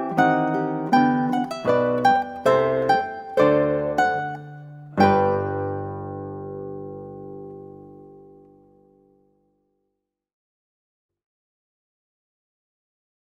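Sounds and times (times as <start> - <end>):
ukulele: 0.0 - 9.1
guitar: 0.0 - 9.4.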